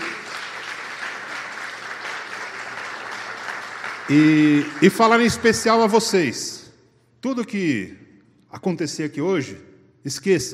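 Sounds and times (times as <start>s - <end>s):
audience applause: 0.0s - 5.6s
speech: 4.1s - 6.6s, 7.2s - 10.5s.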